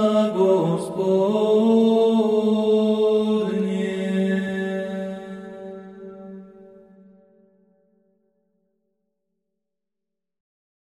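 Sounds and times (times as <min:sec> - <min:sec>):
hymn chant: 0:00.0 - 0:06.8.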